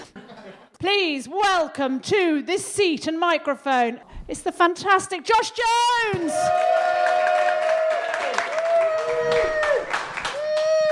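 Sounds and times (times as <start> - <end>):
speech: 0.8 - 6.9
audience clapping: 6.4 - 10.9.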